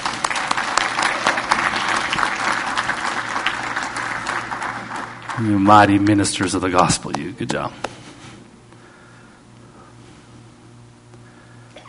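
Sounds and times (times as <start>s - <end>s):
audience applause: 0.0s - 7.2s
speech: 5.4s - 7.9s.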